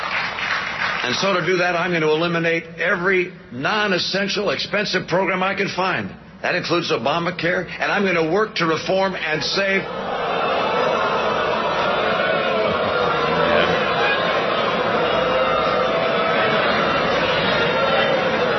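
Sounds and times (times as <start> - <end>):
speech: 1.0 - 10.1
crowd booing: 9.6 - 18.5.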